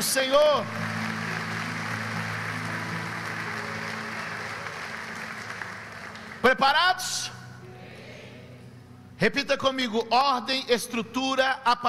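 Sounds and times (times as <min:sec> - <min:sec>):
speech: 0:00.0 - 0:00.9, 0:06.4 - 0:07.4, 0:09.2 - 0:11.8
audience applauding: 0:00.6 - 0:06.6.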